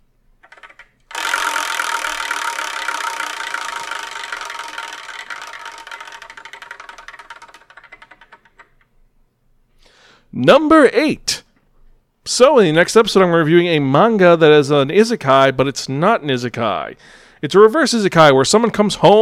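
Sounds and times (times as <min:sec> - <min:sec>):
spun wheel clicking rattle: 0:00.4 - 0:08.9
speech: 0:10.4 - 0:11.4, 0:12.3 - 0:19.2.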